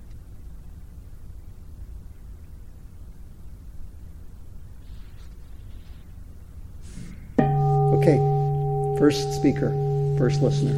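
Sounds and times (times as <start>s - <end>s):
meditation bell ringing: 7.4s - 10.7s
speech: 8.0s - 8.3s, 9.0s - 10.7s.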